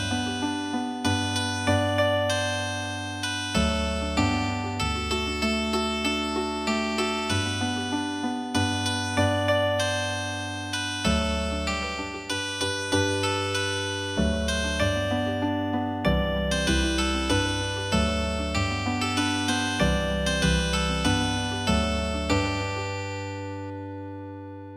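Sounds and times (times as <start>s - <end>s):
healing harp music: 0.0s - 24.7s.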